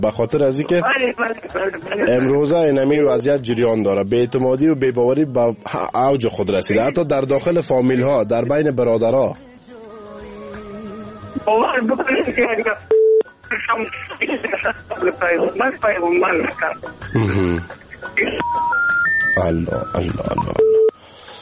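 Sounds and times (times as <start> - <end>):
speech: 0.0 - 9.5, 11.4 - 20.8
talk over a telephone line: 0.8 - 2.3, 11.5 - 18.6, 19.2 - 20.9
telephone line tones as the call drops: 18.4 - 21.0.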